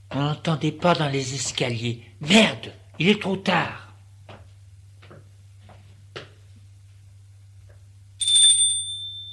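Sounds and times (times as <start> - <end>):
speech: 0.2 - 3.8
doorbell ringing: 8.2 - 9.3.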